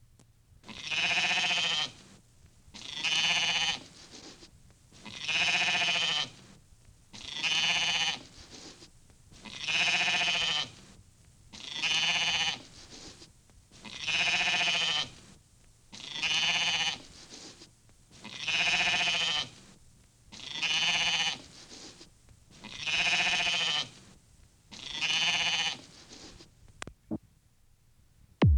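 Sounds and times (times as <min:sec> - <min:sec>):
sheep bleating: 0:00.7 - 0:02.0, 0:02.8 - 0:03.8, 0:05.0 - 0:06.4, 0:07.2 - 0:08.2, 0:09.4 - 0:10.7, 0:11.6 - 0:12.6, 0:13.8 - 0:15.2, 0:16.0 - 0:17.0, 0:18.2 - 0:19.6, 0:20.3 - 0:21.5, 0:22.6 - 0:24.0, 0:24.7 - 0:25.9.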